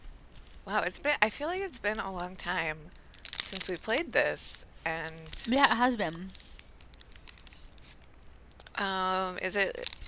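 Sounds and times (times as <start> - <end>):
speech: 0.7 - 6.4, 8.8 - 10.0
snack wrapper crinkling: 2.9 - 4.2, 5.2 - 8.7, 9.4 - 10.0.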